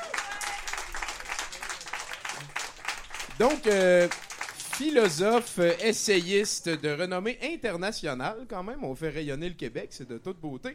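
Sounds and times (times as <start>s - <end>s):
live audience applause: 0.0s - 6.5s
speech: 3.4s - 4.2s, 4.8s - 10.7s.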